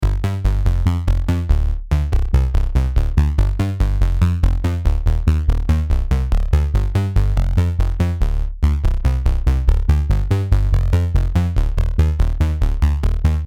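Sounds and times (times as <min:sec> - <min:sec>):
bass: 0:00.0 - 0:13.4.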